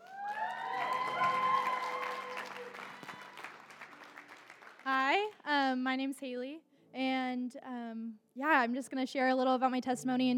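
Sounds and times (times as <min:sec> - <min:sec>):
audience applause: 0:00.0 - 0:05.2
speech: 0:05.8 - 0:10.3.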